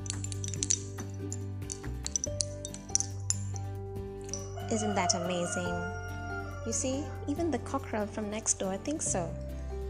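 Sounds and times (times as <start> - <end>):
dreamcatcher beads and feathers tinkling and clinking: 0.0 - 4.7
speech: 4.7 - 6.0, 6.6 - 9.8.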